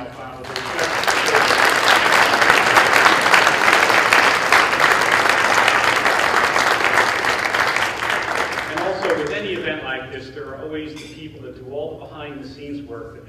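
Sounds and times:
dinner audience applause: 0.4 - 9.7.

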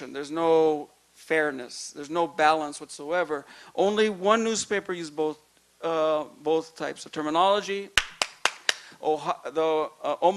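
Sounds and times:
speech: 0.0 - 8.0, 9.0 - 10.3
hand clapping: 8.0 - 8.9.

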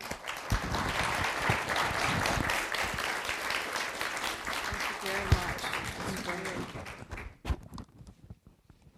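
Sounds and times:
audience applause at a lecture on red tides and shellfish: 0.0 - 7.4.

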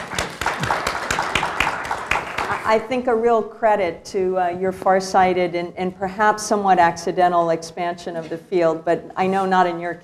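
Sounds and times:
audience clapping: 0.0 - 2.7
speech: 2.7 - 10.0.

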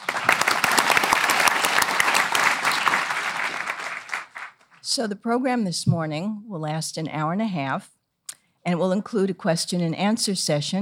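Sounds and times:
audience applause at a history program: 0.0 - 4.8
speech: 5.0 - 8.0, 8.7 - 10.8.

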